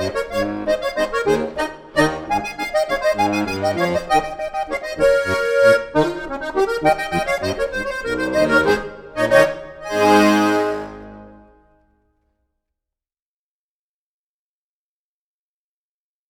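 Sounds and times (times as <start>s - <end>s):
landler dance music: 0.0s - 11.5s.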